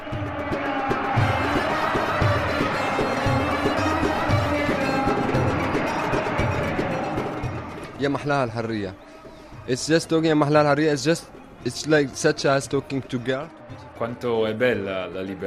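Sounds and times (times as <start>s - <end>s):
crowd singing in a square: 0.0s - 8.0s, 9.2s - 15.4s
protest crowd chanting slogans in a square: 0.0s - 8.0s, 11.2s - 15.4s
speech: 8.0s - 15.4s.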